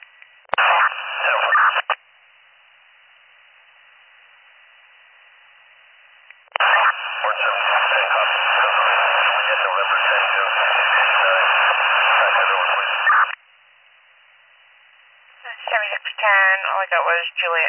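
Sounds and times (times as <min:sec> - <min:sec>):
static on police radio transmission: 0:00.5 - 0:02.0, 0:06.5 - 0:13.4, 0:15.4 - 0:17.6
speech: 0:16.8 - 0:17.6.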